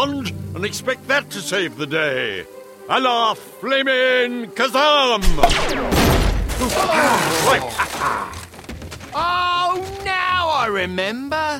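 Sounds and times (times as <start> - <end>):
speech: 0.0 - 6.0, 6.6 - 8.4, 9.2 - 10.0, 10.6 - 11.5
sci-fi alien death ray warbling electronic zaps: 5.2 - 6.5.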